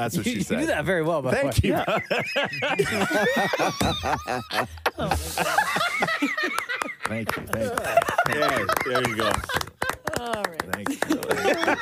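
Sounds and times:
speech: 0.0s - 11.8s
laughter: 1.4s - 11.8s
person clapping hands: 6.4s - 11.6s.

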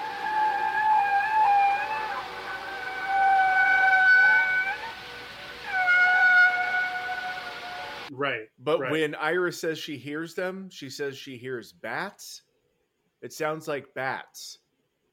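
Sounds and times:
whale song: 0.0s - 8.1s
speech: 8.2s - 12.5s, 13.2s - 14.6s.

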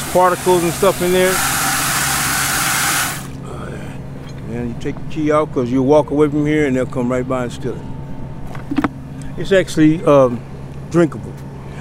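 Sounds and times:
water pumped from a utility truck's tank into a clear bucket: 0.0s - 3.4s
speech: 0.1s - 1.5s, 4.6s - 7.9s, 9.4s - 11.4s.

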